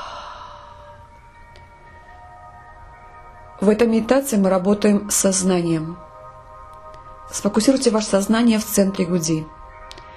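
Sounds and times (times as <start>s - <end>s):
slow breathy exhale after a deep breath held during meditation: 0.0s - 1.1s
speech: 3.6s - 6.1s, 7.3s - 9.6s.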